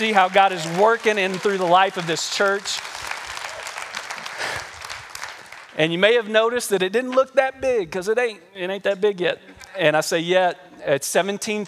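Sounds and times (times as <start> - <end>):
speech: 0.0 - 3.0, 5.8 - 11.6
audience clapping: 0.0 - 6.3, 11.4 - 11.6.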